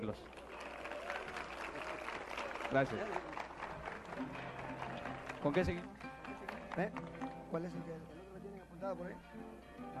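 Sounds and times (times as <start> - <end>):
speech: 0.0 - 0.4, 2.7 - 3.4, 4.2 - 4.6, 5.4 - 6.0, 6.8 - 8.2, 8.8 - 9.9
audience applause: 0.0 - 7.4.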